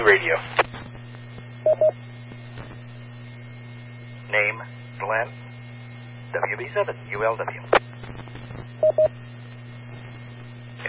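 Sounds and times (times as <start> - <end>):
speech: 0.0 - 0.6, 4.3 - 5.4, 6.3 - 9.2
steady low hum of static: 0.0 - 10.8
radio transmission beeps: 1.6 - 1.9, 8.8 - 9.1.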